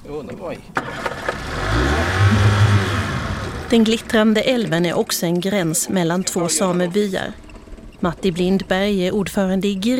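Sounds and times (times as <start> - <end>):
speech: 0.2 - 2.5, 3.7 - 9.9
distant road traffic on the road between Kiruna and Nikkaluokta: 0.6 - 9.9
car passing: 0.8 - 4.2.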